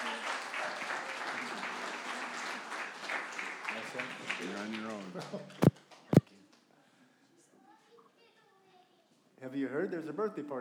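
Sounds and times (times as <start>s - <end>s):
crowd clapping: 0.0s - 5.1s
speech: 4.0s - 5.7s, 9.4s - 10.5s.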